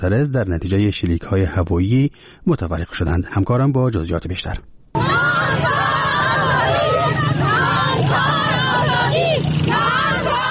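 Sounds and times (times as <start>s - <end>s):
speech: 0.0s - 4.8s
protesting women chanting slogan: 5.0s - 10.4s
scattered shouts: 5.0s - 10.4s.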